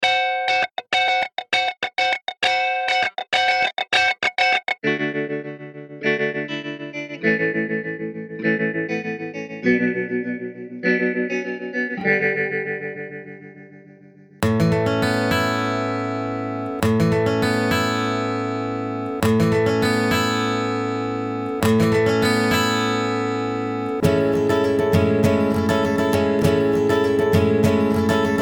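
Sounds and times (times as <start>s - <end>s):
guitar: 0.0s - 28.3s.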